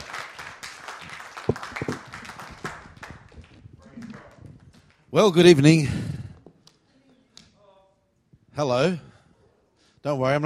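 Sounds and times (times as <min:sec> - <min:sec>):
audience clapping hands: 0:00.0 - 0:05.1
speech: 0:05.2 - 0:06.1, 0:08.6 - 0:09.1, 0:10.0 - 0:10.4.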